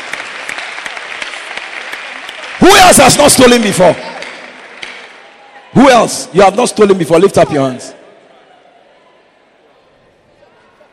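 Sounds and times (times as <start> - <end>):
audience applause: 0.0 - 5.4
speech: 2.6 - 4.2, 5.8 - 8.0.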